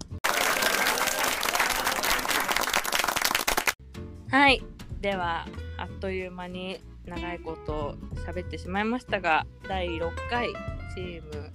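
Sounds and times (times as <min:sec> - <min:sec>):
hand clapping: 0:00.0 - 0:03.8
speech: 0:04.3 - 0:11.5.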